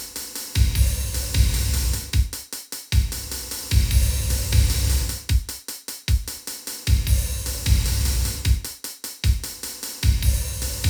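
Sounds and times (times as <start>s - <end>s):
reverb beat: 0.4s - 2.4s, 2.9s - 5.5s, 6.8s - 8.7s, 9.3s - 10.8s.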